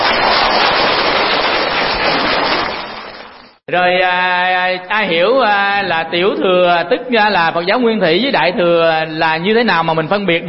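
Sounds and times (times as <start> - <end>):
audience applause: 0.0 - 3.5
speech: 3.7 - 10.4.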